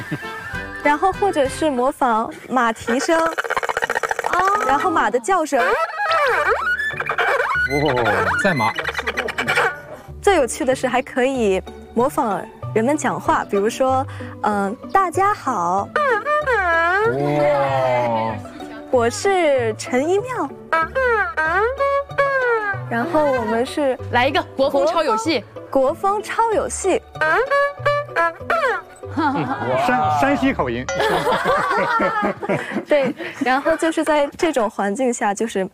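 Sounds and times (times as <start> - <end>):
laughter: 0.0 - 0.7, 29.1 - 34.0
speech: 0.1 - 3.5, 4.6 - 6.7, 7.7 - 8.9, 10.2 - 21.8, 22.9 - 35.7
solo erhu imitating bird calls: 2.8 - 10.0, 15.8 - 18.5, 20.6 - 23.7.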